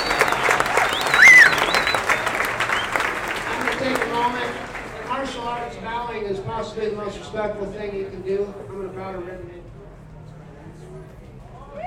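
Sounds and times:
sharp whistle: 0.0s - 3.0s
faint cheering: 0.0s - 3.3s
audience applause: 0.0s - 5.7s
speech: 6.6s - 9.6s.

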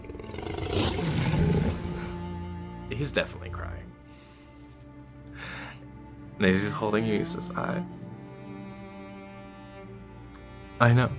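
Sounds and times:
full throaty lion roar: 0.0s - 2.2s
speech: 3.0s - 3.9s, 6.4s - 8.0s, 10.8s - 11.1s.

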